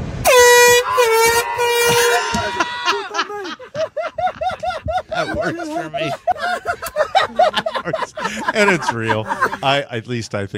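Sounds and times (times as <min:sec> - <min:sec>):
truck air horn blaring: 0:00.1 - 0:02.9
laughter: 0:01.1 - 0:10.0
speech: 0:05.4 - 0:06.6, 0:08.6 - 0:10.5.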